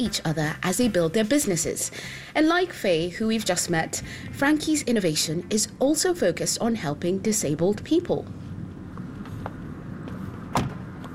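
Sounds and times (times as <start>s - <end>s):
speech: 0.0s - 8.5s
low steady outdoor rumble: 0.0s - 11.1s
car door shutting: 9.2s - 11.1s.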